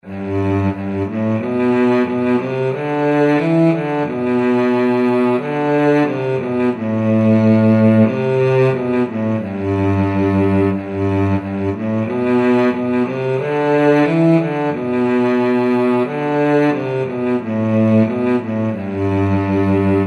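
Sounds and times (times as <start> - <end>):
cello: 0.0 - 20.0.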